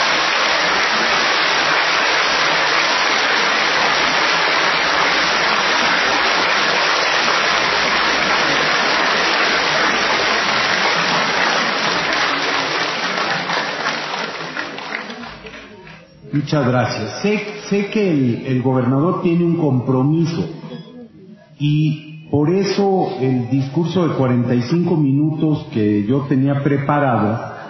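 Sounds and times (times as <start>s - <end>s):
audience applause: 0.0s - 16.0s
speech: 16.4s - 20.6s, 21.6s - 27.5s.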